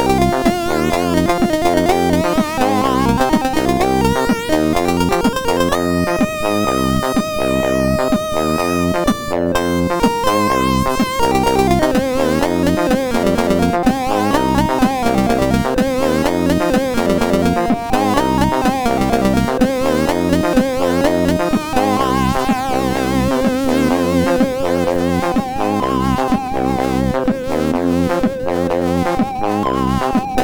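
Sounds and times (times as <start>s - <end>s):
MOS6581 sound chip music: 0.0s - 30.4s.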